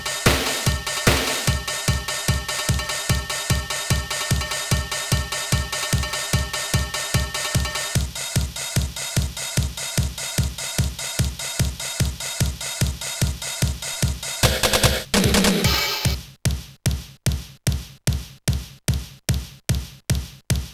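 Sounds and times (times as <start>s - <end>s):
disco music: 0.0s - 16.2s
dynamic drums: 0.0s - 20.7s.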